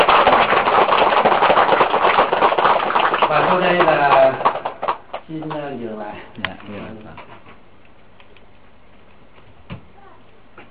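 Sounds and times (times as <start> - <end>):
round of applause: 0.0 - 5.8
speech: 3.5 - 4.1, 5.3 - 7.3.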